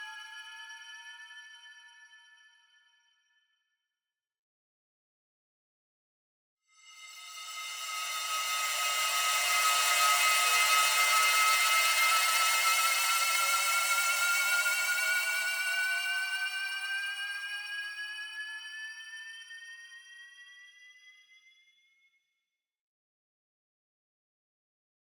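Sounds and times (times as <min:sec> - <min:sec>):
ascending metal crystal shimmer: 0:06.8 - 0:17.7.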